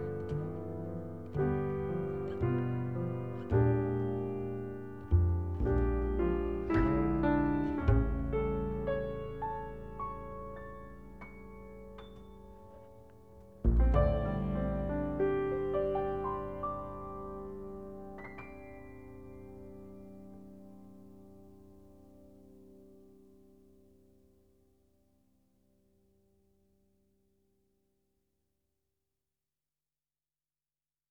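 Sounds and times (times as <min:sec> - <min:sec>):
instrumental music: 0:00.0 - 0:23.2.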